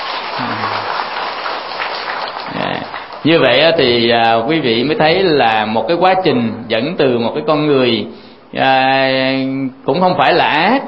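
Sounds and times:
audience applause: 0.0 - 3.3
speech: 3.2 - 10.8.

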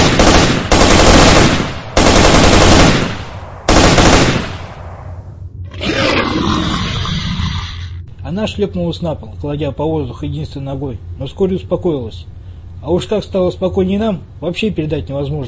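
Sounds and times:
automatic rifle fire: 0.0 - 5.0
rough rumbling roar: 5.6 - 8.0
speech: 8.3 - 15.4.

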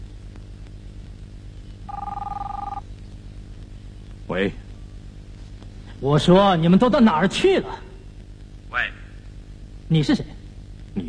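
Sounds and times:
low constant hum: 0.0 - 11.0
telephone bell ringing with a warbling two-tone electronic trill: 1.9 - 2.8
speech: 4.3 - 4.6, 6.0 - 7.9, 9.9 - 10.4.

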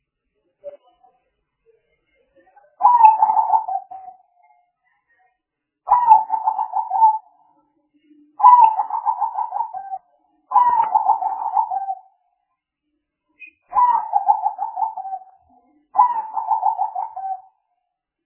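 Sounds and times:
Spotted dove cooing: 2.8 - 4.0, 5.9 - 7.2, 8.4 - 12.0, 13.7 - 15.3, 16.0 - 17.5.

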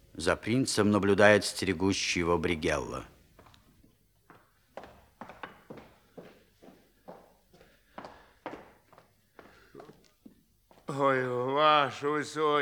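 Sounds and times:
speech: 0.2 - 3.1, 11.0 - 12.6
footsteps pacing back and forth: 3.1 - 11.0.

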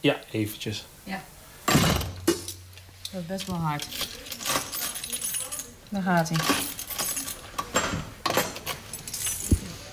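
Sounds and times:
speech: 0.0 - 1.3, 3.1 - 4.2, 5.9 - 6.8
prison cell door keys and bolts jangling: 3.8 - 9.6.

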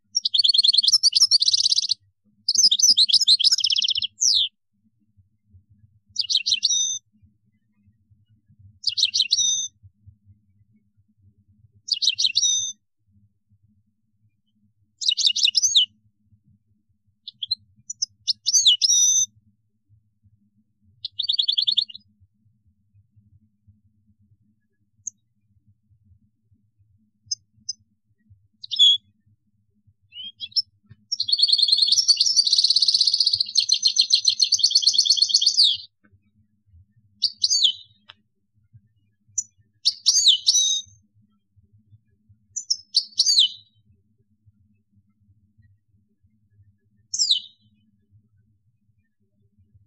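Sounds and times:
European goldfinch song: 0.0 - 4.6, 6.1 - 9.8, 11.8 - 12.8, 14.5 - 16.0, 17.2 - 19.4, 21.0 - 22.1, 27.2 - 29.3, 30.0 - 36.2, 37.1 - 38.2, 39.0 - 41.4, 42.1 - 43.8, 46.9 - 47.9.

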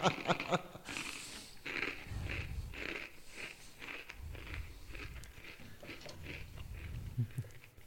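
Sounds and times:
crunchy food being chewed: 0.0 - 7.8
low rumbling, snuffling undertone: 2.0 - 3.4, 4.2 - 5.4, 6.4 - 7.5.

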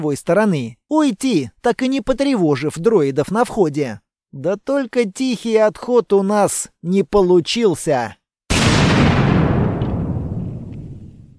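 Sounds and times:
speech: 0.0 - 8.2
powerful explosion: 8.5 - 11.3.

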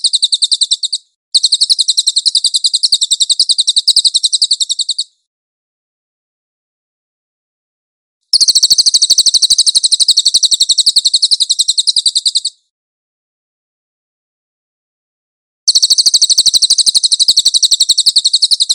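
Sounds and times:
cililin chattering trills: 0.0 - 5.1, 8.4 - 12.6, 15.7 - 18.7.

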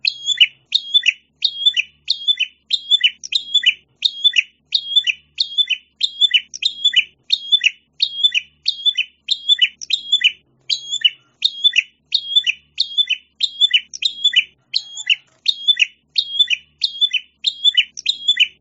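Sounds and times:
prinia chirping: 0.0 - 18.5.

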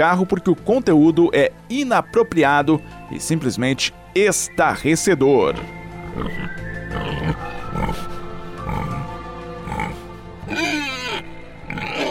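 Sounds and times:
speech: 0.0 - 8.1
pig grunting and oinking: 5.4 - 12.0
steady droning background: 5.4 - 12.0.

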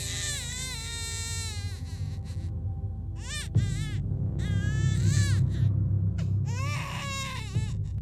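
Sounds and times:
baby crying shrilly: 0.0 - 2.5, 3.2 - 5.7, 6.5 - 7.9.

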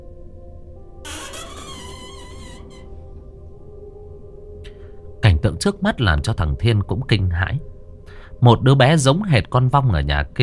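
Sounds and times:
door creaking open: 1.1 - 3.7
speech: 5.4 - 7.8, 8.4 - 10.4.

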